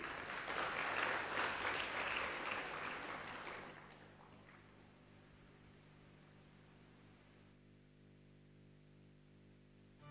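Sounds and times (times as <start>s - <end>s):
crowd clapping: 0.0s - 4.7s.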